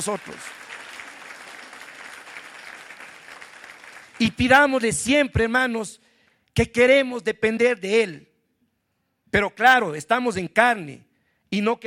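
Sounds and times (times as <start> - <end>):
speech: 0.0 - 0.6, 4.2 - 6.0, 6.6 - 8.3, 9.3 - 11.8
audience applause: 0.0 - 4.4.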